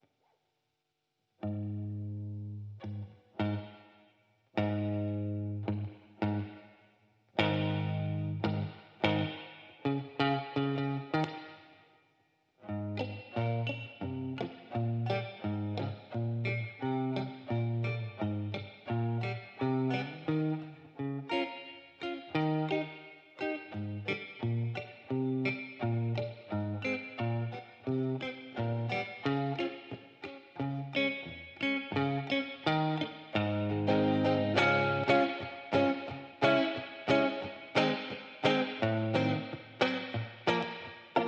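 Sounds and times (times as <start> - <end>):
clean electric guitar: 1.4 - 4.0, 4.6 - 6.8, 7.4 - 11.8, 12.6 - 41.2.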